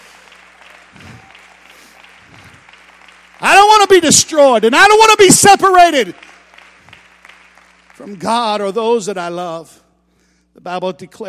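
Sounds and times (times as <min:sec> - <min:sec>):
audience clapping hands: 0:00.0 - 0:09.0
speech: 0:03.9 - 0:06.3, 0:08.1 - 0:09.8, 0:10.6 - 0:11.2.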